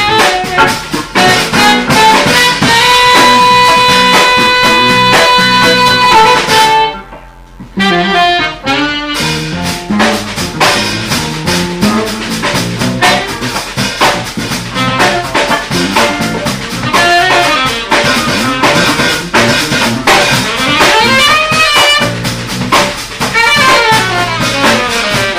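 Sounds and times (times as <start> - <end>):
slap bass on a Fender P Bass: 0.0 - 25.3.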